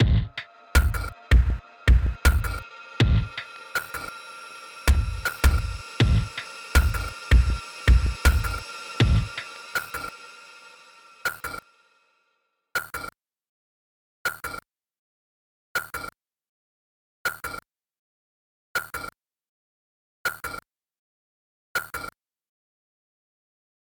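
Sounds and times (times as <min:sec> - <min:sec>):
music: 0:00.0 - 0:12.0.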